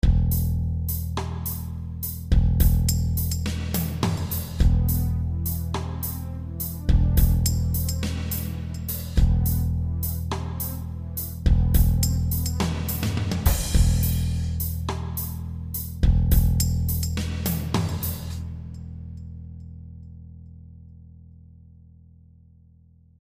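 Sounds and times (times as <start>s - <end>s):
drums: 0.0s - 18.6s.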